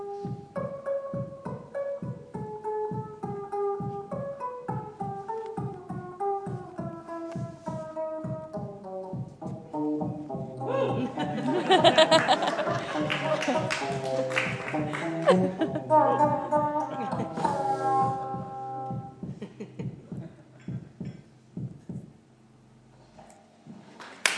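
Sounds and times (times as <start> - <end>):
tiny guitar: 0.0 - 11.3, 13.3 - 19.3
heartbeat: 0.2 - 10.4, 16.6 - 22.2
laughter: 10.6 - 17.5.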